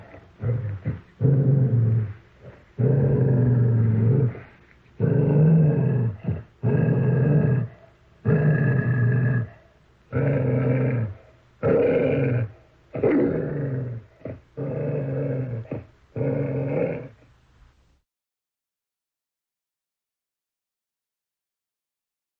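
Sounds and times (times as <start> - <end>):
dog growling: 0.0 - 17.2.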